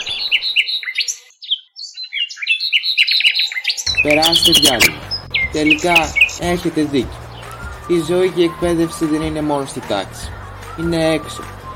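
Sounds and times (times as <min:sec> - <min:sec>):
bird chirping: 0:00.0 - 0:08.0
speech: 0:04.0 - 0:07.2, 0:07.9 - 0:10.2, 0:10.8 - 0:11.6.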